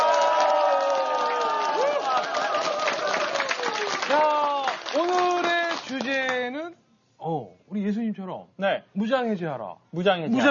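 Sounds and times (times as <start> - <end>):
audience cheering and clapping: 0.0 - 6.2
speech: 7.8 - 10.4.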